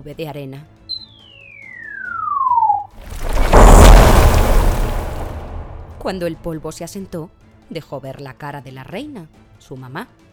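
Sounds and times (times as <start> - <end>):
speech: 0.0 - 0.8, 6.0 - 10.2
steady high whistle sliding downward: 0.9 - 2.9
pyramid collapsing with loud heavy crash: 2.7 - 6.6.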